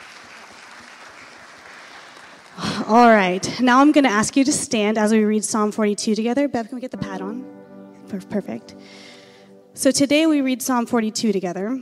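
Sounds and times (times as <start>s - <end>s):
church congregation clapping for fathers: 0.0s - 2.8s
speech: 2.9s - 9.1s, 9.8s - 11.8s.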